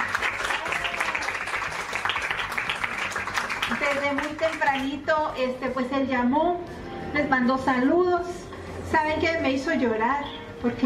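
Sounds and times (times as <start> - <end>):
applause: 0.0 - 5.0
speech: 3.9 - 10.8.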